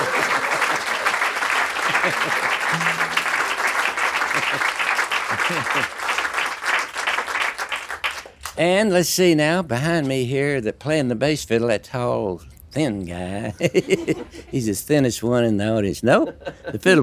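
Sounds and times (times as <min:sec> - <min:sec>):
audience applause at a live music show for a guitarist: 0:00.0 - 0:08.3
laughter: 0:01.8 - 0:02.6, 0:05.3 - 0:05.9, 0:13.6 - 0:14.4
speech: 0:02.0 - 0:03.0, 0:05.5 - 0:06.0, 0:08.6 - 0:17.0.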